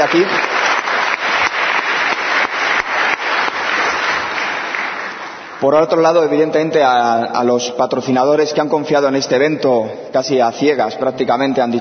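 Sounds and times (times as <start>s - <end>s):
speech: 0.0s - 0.5s, 5.6s - 11.7s
audience applause: 0.0s - 5.6s.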